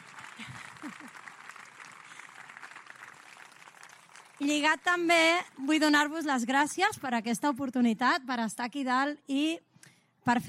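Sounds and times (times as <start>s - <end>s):
audience applause: 0.0s - 5.1s
speech: 4.4s - 9.7s, 10.3s - 10.4s.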